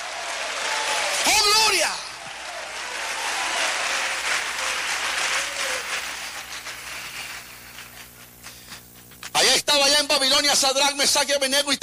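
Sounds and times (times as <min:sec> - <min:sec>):
audience applause: 0:00.0 - 0:08.7
speech: 0:10.4 - 0:11.8.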